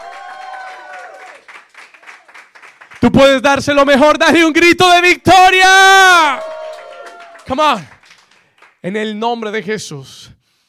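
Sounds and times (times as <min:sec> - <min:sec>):
audience applauding loudly: 0:00.0 - 0:03.4, 0:06.2 - 0:08.8
speech: 0:03.0 - 0:06.5, 0:07.5 - 0:08.0, 0:08.8 - 0:10.4.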